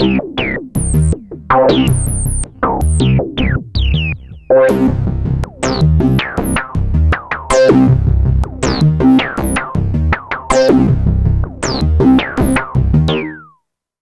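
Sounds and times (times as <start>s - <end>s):
analog synthesizer: 0.0s - 13.5s.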